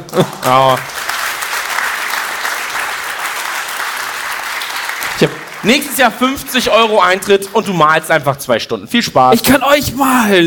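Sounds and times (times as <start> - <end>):
audience applause: 0.0 - 7.6
speech: 0.1 - 1.0, 5.2 - 10.4.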